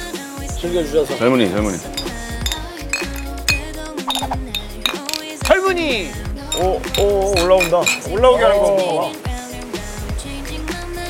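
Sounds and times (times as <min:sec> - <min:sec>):
speech: 0:00.6 - 0:02.0, 0:05.7 - 0:09.2
glasses of cold beer clinking in a toast: 0:01.8 - 0:08.7.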